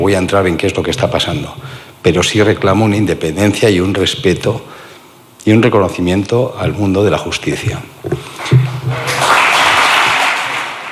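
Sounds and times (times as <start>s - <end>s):
speech: 0.0s - 4.8s, 5.4s - 8.3s
audience applause: 8.4s - 10.9s.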